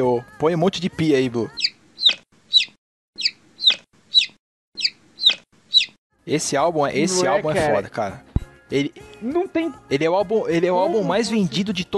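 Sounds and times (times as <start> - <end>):
speech: 0.0 - 1.7, 6.3 - 11.9
chicken clucking: 1.6 - 6.0.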